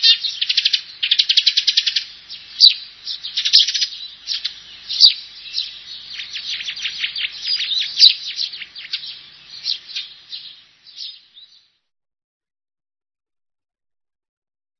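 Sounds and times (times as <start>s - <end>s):
Eurasian tree sparrow calls: 0.0s - 11.7s.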